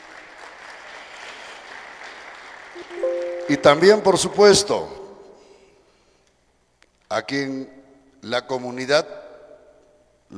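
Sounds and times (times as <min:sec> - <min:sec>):
audience applause: 0:00.0 - 0:03.9
speech: 0:02.8 - 0:05.0, 0:07.1 - 0:09.2.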